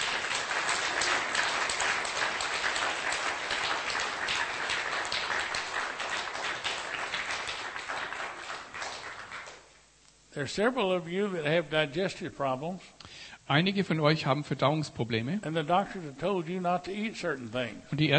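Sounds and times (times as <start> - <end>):
church congregation applauding during a service: 0.0 - 9.7
speech: 10.4 - 18.1.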